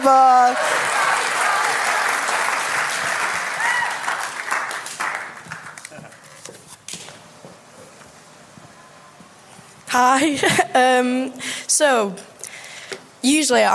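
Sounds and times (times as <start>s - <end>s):
speech: 0.0s - 0.9s, 10.0s - 12.3s, 13.2s - 13.7s
audience applause: 0.0s - 6.4s.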